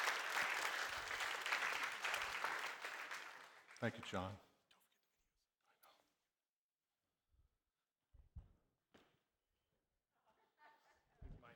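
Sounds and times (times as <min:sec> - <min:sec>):
audience applause: 0:00.0 - 0:04.1
speech: 0:03.8 - 0:04.5.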